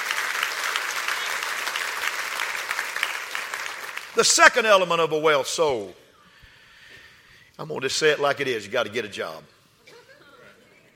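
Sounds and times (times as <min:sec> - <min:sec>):
audience clapping hands: 0:00.0 - 0:04.7
speech: 0:04.2 - 0:06.0, 0:07.6 - 0:09.6.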